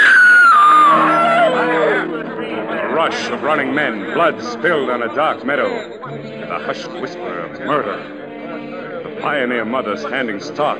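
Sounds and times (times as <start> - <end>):
woman screaming: 0.0 - 2.1
faint murmur of voices: 0.0 - 10.7
speech: 3.1 - 8.2, 9.2 - 10.7.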